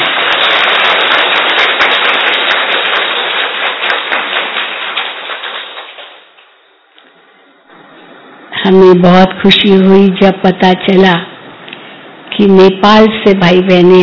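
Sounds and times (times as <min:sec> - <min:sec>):
audience clapping loudly: 0:00.0 - 0:06.6
speech: 0:08.7 - 0:11.3, 0:12.4 - 0:14.0.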